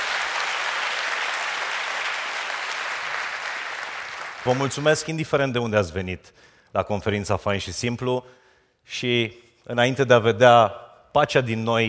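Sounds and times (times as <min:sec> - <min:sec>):
audience applauding: 0:00.0 - 0:05.2
speech: 0:04.4 - 0:11.8.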